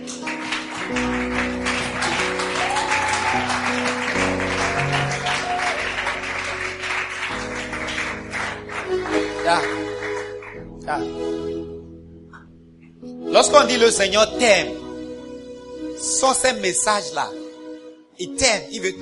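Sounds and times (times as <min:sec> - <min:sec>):
church congregation clapping: 0:00.0 - 0:10.7
speech: 0:13.4 - 0:14.8, 0:16.2 - 0:17.4, 0:18.2 - 0:19.0.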